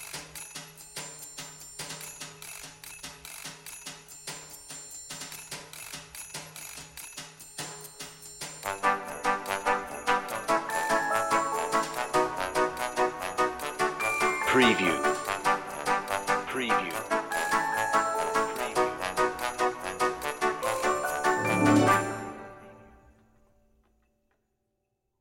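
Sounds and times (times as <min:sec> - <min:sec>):
woodwinds playing without strings: 0:08.7 - 0:22.9.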